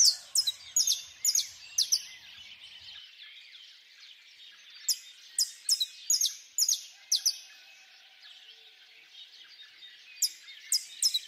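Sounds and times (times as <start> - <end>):
birds in a quiet background chorus: 0.0 - 11.2.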